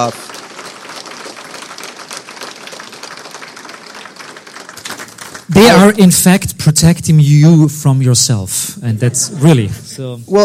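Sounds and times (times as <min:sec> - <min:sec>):
speech: 0:00.0 - 0:00.3, 0:05.5 - 0:10.4
audience round of applause: 0:00.0 - 0:06.4.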